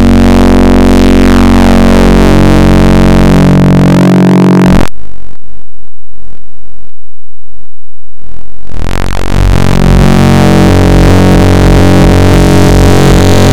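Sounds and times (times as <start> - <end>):
wavetable synth: 0.0 - 4.9, 8.7 - 13.5.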